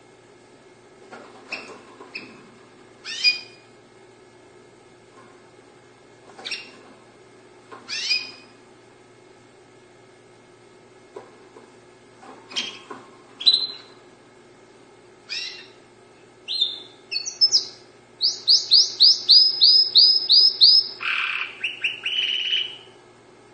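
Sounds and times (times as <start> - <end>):
Dutch canary singing: 3.0 - 3.6, 6.4 - 6.8, 7.9 - 8.5, 13.4 - 14.0, 15.3 - 15.8, 16.4 - 23.0.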